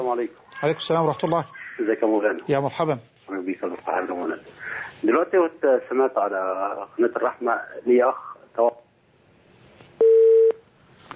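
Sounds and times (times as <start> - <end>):
speech: 0.1 - 8.8
telephone beep from a dropped caller's line: 10.0 - 10.6.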